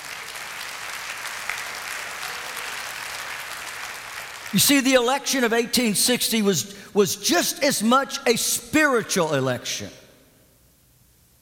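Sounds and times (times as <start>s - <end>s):
audience applause: 0.0s - 4.6s
speech: 4.5s - 10.0s.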